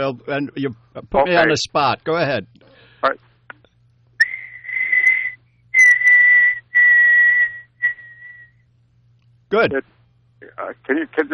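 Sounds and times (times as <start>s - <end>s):
speech: 0.0s - 3.3s, 9.5s - 9.9s, 10.5s - 11.3s
person whistling an imitation of a bird call: 4.2s - 8.5s.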